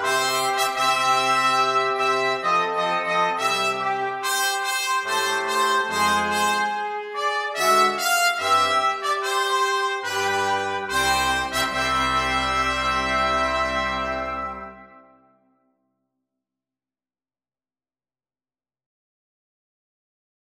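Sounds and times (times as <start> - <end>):
septet playing a hymn: 0.0 - 15.3.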